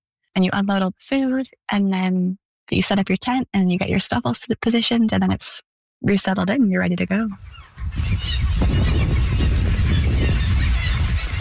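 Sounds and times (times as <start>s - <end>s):
speech: 0.4s - 9.0s
hundreds of birds calling: 7.3s - 11.4s.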